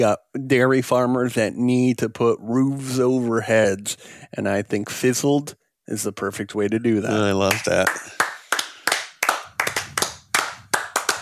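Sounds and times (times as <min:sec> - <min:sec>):
speech: 0:00.0 - 0:08.2
hand clapping: 0:07.4 - 0:11.1.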